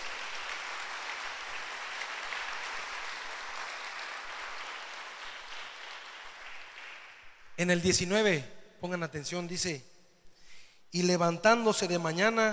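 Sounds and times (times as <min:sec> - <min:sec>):
audience applauding loudly: 0:00.0 - 0:07.6
speech: 0:07.6 - 0:09.9, 0:10.9 - 0:12.5.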